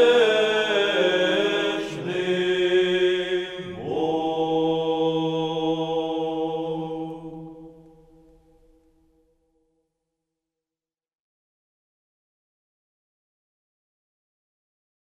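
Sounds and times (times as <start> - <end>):
Greek-style chant in tone 3: 0.0 - 9.2.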